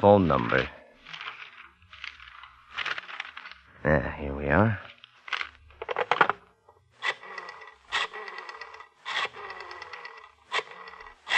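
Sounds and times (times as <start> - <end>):
speech: 0.0 - 0.8, 3.8 - 4.9
pages of a thick telephone book flipping: 0.0 - 3.7, 4.9 - 6.4.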